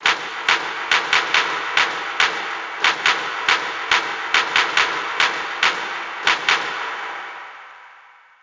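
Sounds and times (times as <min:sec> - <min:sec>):
hand clap: 0:00.0 - 0:07.5.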